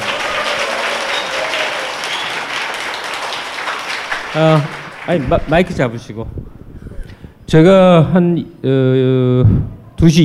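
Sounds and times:
audience applause: 0.0s - 6.1s
speech: 4.4s - 6.4s, 7.5s - 10.2s.

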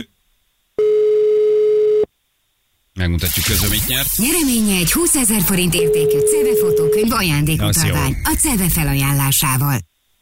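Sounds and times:
telephone line tone while a radio listener is being called: 0.8s - 2.1s, 5.7s - 7.2s
speech: 3.0s - 9.9s.

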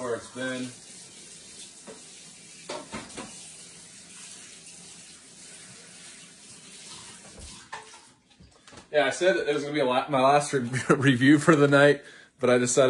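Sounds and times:
tap water running while washing a Nordic Ware microwave egg muffin pan: 0.0s - 8.8s
speech: 0.2s - 0.8s, 8.9s - 12.8s.

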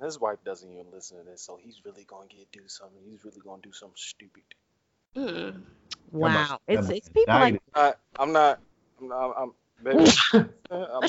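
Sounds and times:
speech: 0.0s - 4.6s, 5.2s - 11.0s
short voiced sounds: 5.2s - 7.6s
sneeze: 9.9s - 11.0s.

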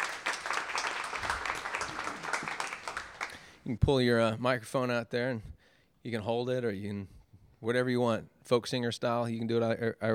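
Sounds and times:
crowd applauding: 0.0s - 3.5s
speech: 3.7s - 10.1s.

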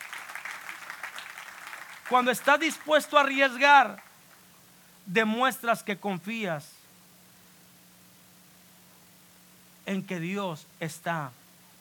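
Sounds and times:
audience applause: 0.0s - 4.4s
speech: 2.1s - 4.1s, 5.1s - 6.7s, 9.9s - 11.4s.

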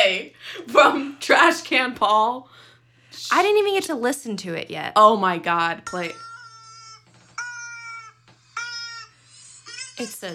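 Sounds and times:
speech: 0.7s - 2.6s, 3.2s - 6.3s, 10.0s - 10.3s
rubber chicken squeaking: 6.0s - 10.0s.

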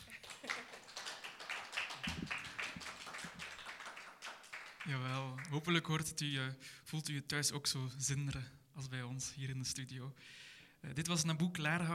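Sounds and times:
small applause: 0.0s - 5.7s
speech: 4.9s - 11.9s.

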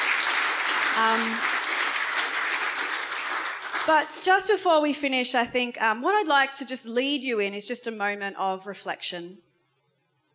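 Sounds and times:
audience cheering: 0.0s - 4.2s
speech: 1.0s - 1.6s, 3.9s - 9.5s.

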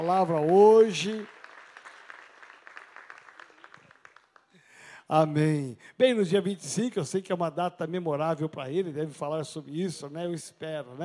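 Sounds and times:
speech: 0.0s - 1.4s, 5.1s - 11.0s
audience applause: 0.0s - 4.5s.

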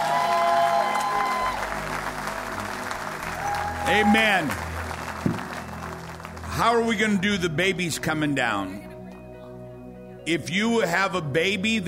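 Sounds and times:
audience applauding: 0.0s - 7.3s
speech: 3.9s - 4.7s, 6.6s - 8.9s, 10.3s - 11.8s.

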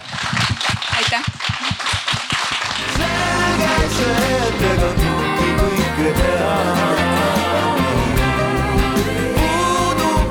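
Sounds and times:
audience applause: 0.0s - 4.5s
music with sustained tones: 2.8s - 10.2s.

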